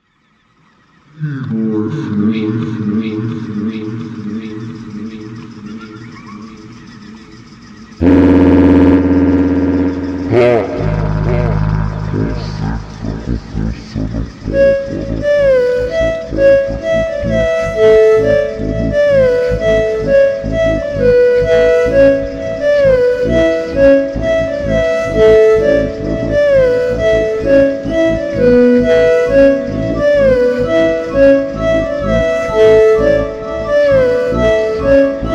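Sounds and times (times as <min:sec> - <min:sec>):
hyper slowed montagem music: 0:02.1 - 0:35.3.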